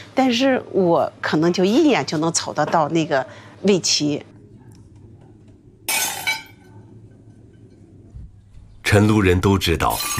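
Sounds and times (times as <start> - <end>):
speech: 0.2 - 4.3, 8.9 - 10.1
flawed kiln-fired porcelain pieces smashed at a family porcelain workshop in Chenlu: 5.9 - 6.6.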